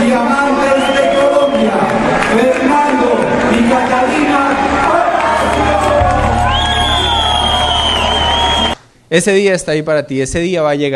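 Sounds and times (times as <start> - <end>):
audience applause and cheering: 0.2 - 8.8
speech: 9.1 - 10.9.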